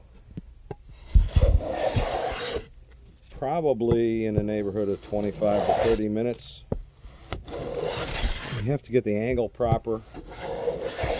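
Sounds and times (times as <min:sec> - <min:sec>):
hand plane shaving a wooden fingerboard: 0:00.9 - 0:02.7, 0:03.8 - 0:11.1
speech: 0:03.4 - 0:06.7, 0:08.6 - 0:10.2
soft knocks: 0:03.8 - 0:04.6.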